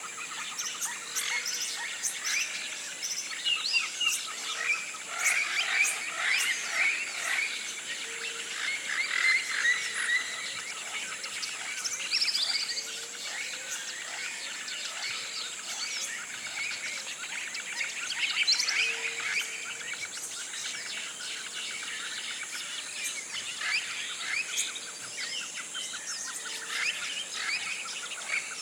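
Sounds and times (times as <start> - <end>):
bird chorus chirping: 0.0 - 28.5.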